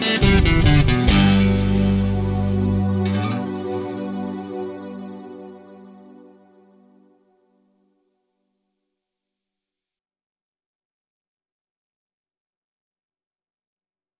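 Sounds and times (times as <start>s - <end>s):
guitar exercise at 70 bpm: 0.0s - 5.0s.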